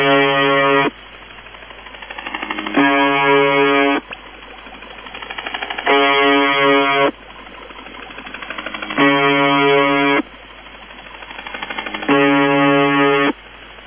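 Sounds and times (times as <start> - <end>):
wavering buzzer: 0.0 - 1.0, 2.1 - 4.2, 5.0 - 7.2, 8.1 - 10.3, 11.2 - 13.4.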